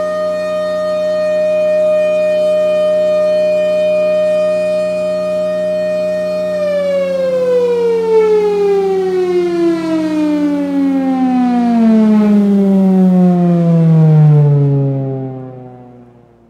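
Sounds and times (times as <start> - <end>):
air raid sirens alert: 0.0 - 16.4.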